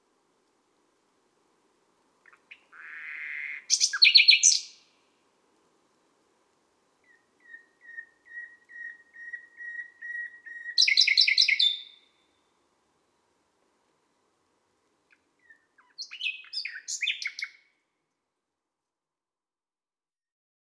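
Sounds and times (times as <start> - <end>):
common nightingale singing at midnight in Les Salelles, Ardeche: 2.2 - 5.0, 7.0 - 13.4, 15.1 - 17.8.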